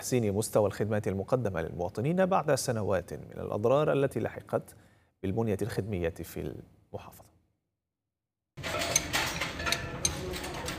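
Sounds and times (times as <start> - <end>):
speech: 0.0 - 7.3
wrenches and spare parts clinking in workshop: 8.6 - 10.7.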